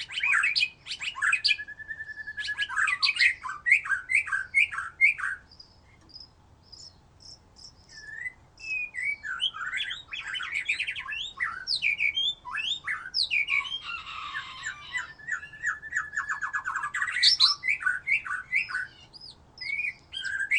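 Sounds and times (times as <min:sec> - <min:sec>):
white-rumped shama song: 0:00.0 - 0:20.5.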